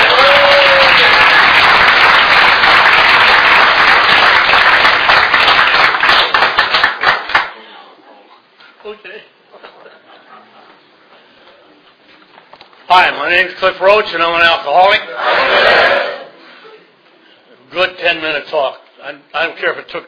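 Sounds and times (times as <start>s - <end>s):
audience applause welcoming the main speaker at a meeting: 0.0s - 7.6s
speech: 12.9s - 16.0s, 17.7s - 20.0s.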